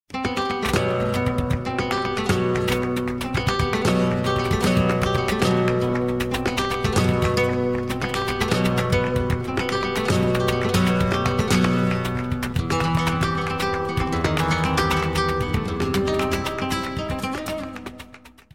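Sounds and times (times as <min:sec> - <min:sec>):
flamenco tone: 0:00.1 - 0:18.5.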